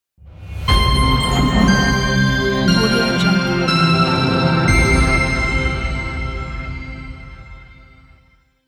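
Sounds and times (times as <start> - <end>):
sci-fi logo sound: 0.5 - 6.4.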